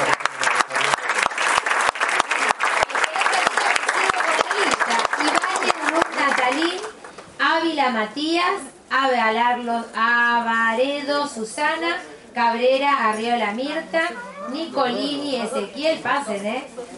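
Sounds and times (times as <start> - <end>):
audience applause: 0.0 - 7.1
speech: 8.0 - 16.8.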